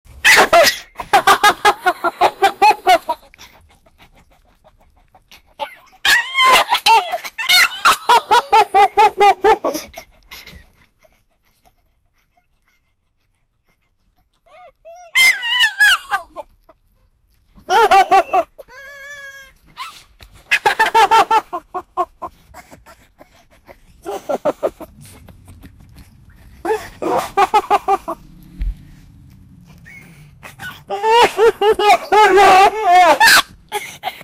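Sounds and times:
laughter of an 18 year old: 0.4s - 4.2s, 4.8s - 11.2s, 17.7s - 18.5s, 20.5s - 22.7s, 23.6s - 25.0s, 26.7s - 28.3s, 30.9s - 33.5s.

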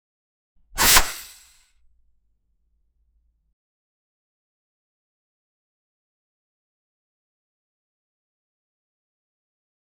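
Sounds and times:
match striking: 0.8s - 1.5s.

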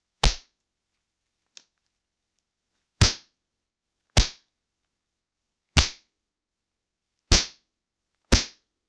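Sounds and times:
old cloth being slapped and grabbed: 4.2s - 4.4s, 7.3s - 7.6s, 8.3s - 8.6s.

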